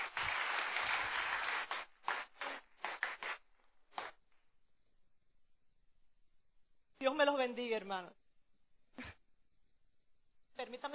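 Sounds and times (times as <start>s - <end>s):
audience applause: 0.0s - 3.4s
speech: 7.0s - 8.2s, 10.7s - 10.9s.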